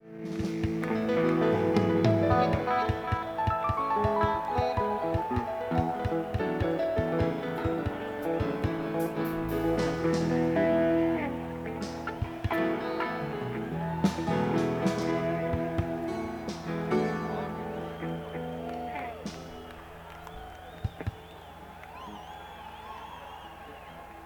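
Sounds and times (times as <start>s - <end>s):
instrument tuning: 0.9s - 19.4s.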